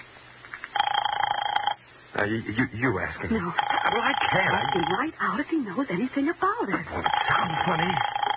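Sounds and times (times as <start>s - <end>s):
telephone buzzing line tone: 0.7s - 1.8s, 3.6s - 5.1s, 7.0s - 8.3s
telephone receiver lifted and number dialed: 0.8s - 1.8s
speech: 2.3s - 8.2s.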